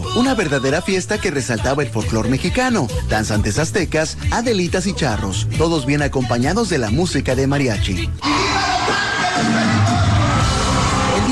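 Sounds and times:
speech: 0.2s - 8.6s
concert audience ovation: 8.2s - 11.2s.

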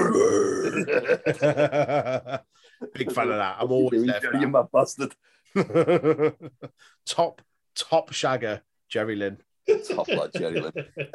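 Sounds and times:
man imitating a death metal scream: 0.0s - 0.9s
laughter: 0.7s - 3.5s, 5.6s - 6.8s, 9.7s - 11.1s
speech: 0.8s - 11.1s.

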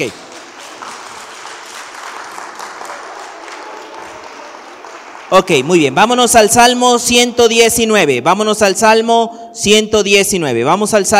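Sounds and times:
speech: 0.0s - 0.2s, 5.3s - 11.1s
audience applause: 0.0s - 5.9s.

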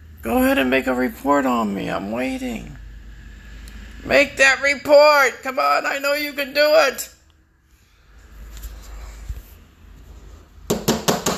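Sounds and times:
speech: 0.2s - 2.8s, 4.0s - 7.1s
knocking on a door: 10.7s - 11.3s.

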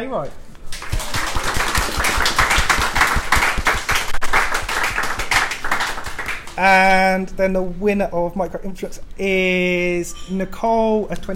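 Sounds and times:
speech: 0.0s - 0.5s, 6.6s - 11.3s
audience round of applause: 0.7s - 6.6s.

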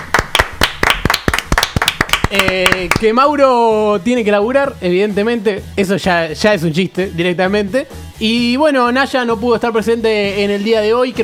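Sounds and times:
applause from a few people: 0.0s - 3.1s
speech: 2.3s - 11.2s.

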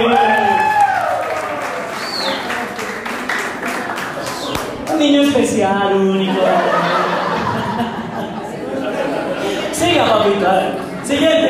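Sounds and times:
applause: 0.0s - 5.0s
speech: 5.4s - 7.0s, 10.0s - 11.4s
laughter: 6.1s - 11.4s.

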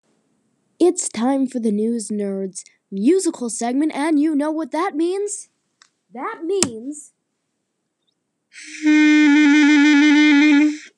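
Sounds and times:
speech: 0.8s - 5.5s, 6.1s - 7.2s, 8.6s - 10.9s
clarinet note played by a beginner: 8.6s - 10.9s.

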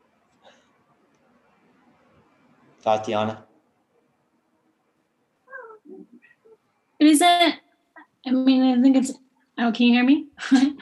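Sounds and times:
speech: 2.8s - 3.5s, 8.4s - 10.8s
dog whining: 5.5s - 6.6s.

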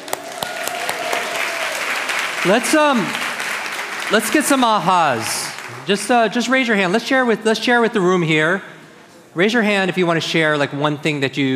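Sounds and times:
round of applause: 0.0s - 6.1s
speech: 2.4s - 3.2s, 4.1s - 8.7s, 9.3s - 11.5s.

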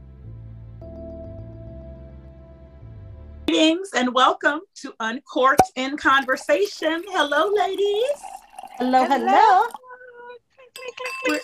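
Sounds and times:
speech: 3.5s - 9.8s, 10.8s - 11.4s
glasses clinking in a toast: 6.2s - 9.8s, 10.8s - 11.4s.

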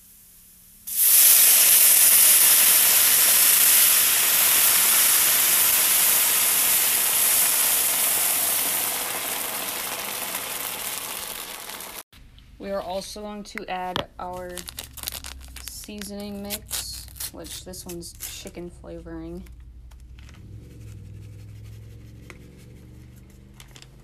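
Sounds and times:
water poured onto browned rice, sizzling: 0.0s - 12.1s
speech: 12.7s - 14.9s, 15.9s - 19.6s.

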